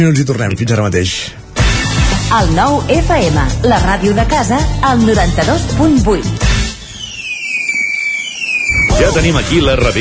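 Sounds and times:
speech: 0.0 - 1.4, 2.3 - 6.5, 9.0 - 10.0
firework whistle: 6.4 - 10.0
crackling fireworks: 6.8 - 10.0.

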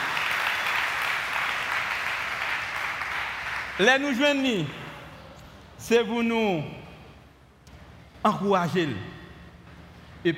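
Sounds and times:
applause: 0.0 - 4.0
speech: 3.8 - 4.8, 5.8 - 6.8, 8.2 - 9.1.

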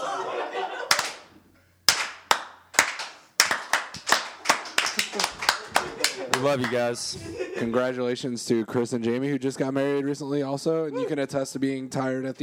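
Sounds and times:
laughter: 0.0 - 1.3, 4.2 - 7.8
crowd slow clap: 0.9 - 7.0
speech: 6.4 - 12.4.

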